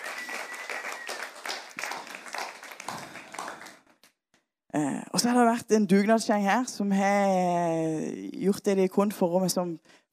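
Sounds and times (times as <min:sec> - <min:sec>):
audience applause: 0:00.0 - 0:04.0
speech: 0:04.8 - 0:10.0.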